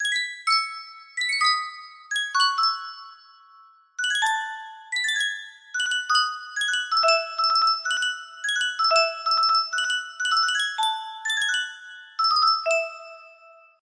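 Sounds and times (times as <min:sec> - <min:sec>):
music box melody: 0:00.0 - 0:13.8.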